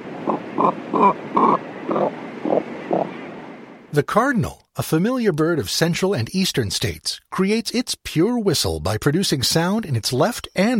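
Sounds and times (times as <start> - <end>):
cormorant grunting: 0.2 - 3.1
speech: 0.6 - 1.2, 4.0 - 10.7.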